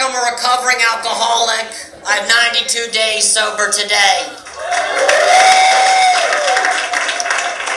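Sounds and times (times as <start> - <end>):
speech: 0.2 - 5.4
audience applause: 4.5 - 7.7
scattered cheers and whistles from the audience: 4.6 - 7.7.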